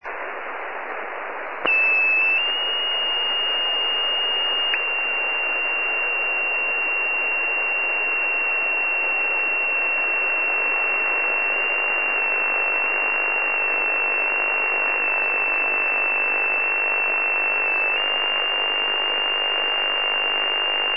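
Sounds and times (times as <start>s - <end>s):
IC-7000 radio receiver noise on LSB: 0.0s - 20.9s.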